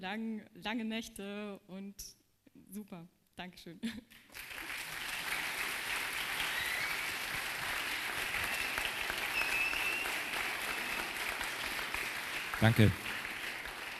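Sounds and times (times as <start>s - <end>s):
speech: 0.0s - 4.8s, 12.6s - 13.2s
warm applause from audience: 4.3s - 13.9s.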